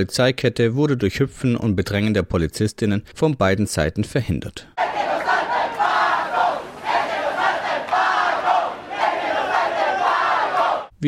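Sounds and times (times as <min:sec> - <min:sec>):
speech: 0:00.0 - 0:05.4
angry protest crowd chanting: 0:04.8 - 0:10.9.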